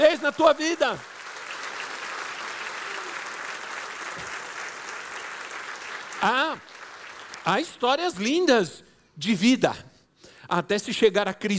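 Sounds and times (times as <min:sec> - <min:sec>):
speech: 0:00.0 - 0:01.1, 0:06.2 - 0:06.7, 0:07.4 - 0:09.9, 0:10.5 - 0:11.5
audience applause: 0:00.0 - 0:07.7.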